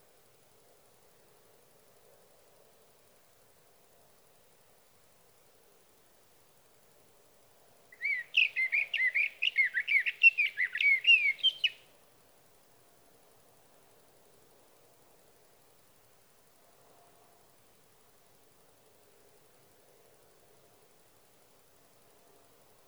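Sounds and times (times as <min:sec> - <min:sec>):
Sage thrasher singing at night: 0:08.0 - 0:11.8.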